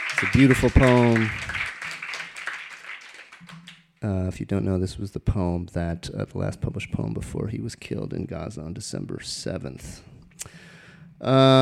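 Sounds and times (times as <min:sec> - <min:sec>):
audience applause: 0:00.0 - 0:03.8
speech: 0:00.2 - 0:01.6, 0:04.0 - 0:10.2, 0:11.2 - 0:11.6.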